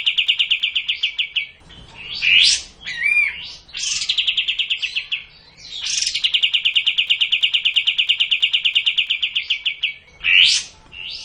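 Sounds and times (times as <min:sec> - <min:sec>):
streak-eared bulbul song: 0:00.0 - 0:11.2.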